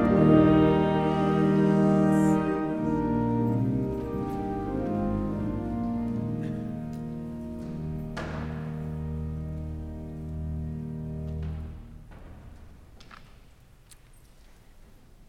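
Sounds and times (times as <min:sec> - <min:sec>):
hymn: 0:00.0 - 0:10.3.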